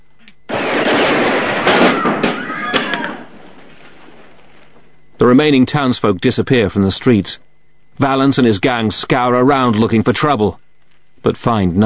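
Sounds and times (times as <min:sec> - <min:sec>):
gang gunfire shooting a painted lawyer's sign to pieces: 0:00.5 - 0:04.5
sharp cracks and thuds: 0:00.5 - 0:05.0
speech: 0:05.3 - 0:10.6, 0:11.2 - 0:11.8.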